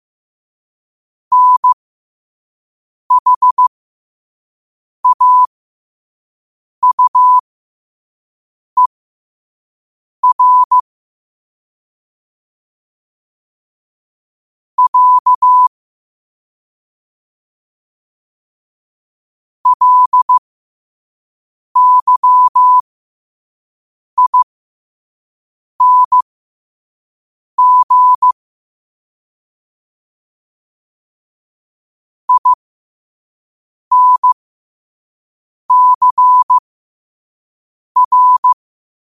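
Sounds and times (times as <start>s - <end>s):
morse code at 5 wpm: 1.3s - 1.8s, 3.1s - 3.7s, 5.0s - 5.5s, 6.8s - 7.4s, 10.2s - 10.8s, 14.8s - 15.7s, 19.6s - 20.4s, 21.8s - 22.8s, 24.2s - 24.5s, 25.8s - 26.2s, 27.6s - 28.4s, 32.3s - 32.6s, 33.9s - 34.4s, 35.7s - 36.6s, 38.0s - 38.6s.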